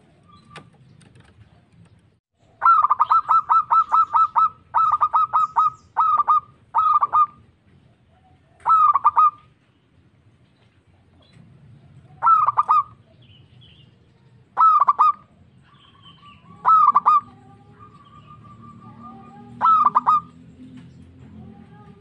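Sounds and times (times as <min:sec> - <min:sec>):
local-type zebra dove cooing: 0:02.6 - 0:09.5, 0:11.8 - 0:13.3, 0:14.5 - 0:20.4.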